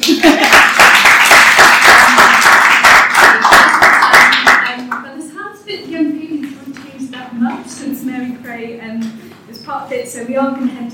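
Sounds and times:
audience applause: 0.0 - 4.7
speech: 10.1 - 10.7.

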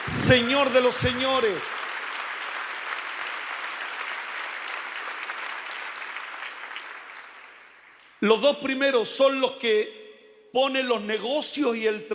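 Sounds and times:
audience applause: 0.0 - 8.0
speech: 0.2 - 1.8, 8.2 - 12.1.

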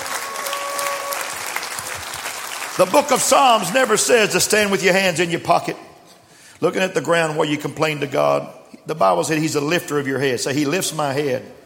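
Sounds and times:
audience clapping hands: 0.0 - 4.6
speech: 2.8 - 5.9, 6.6 - 11.6.

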